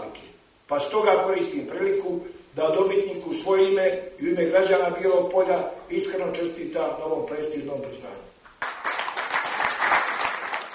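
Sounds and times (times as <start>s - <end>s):
speech: 0.7s - 8.3s
audience applause at a poetry award ceremony: 8.6s - 10.7s.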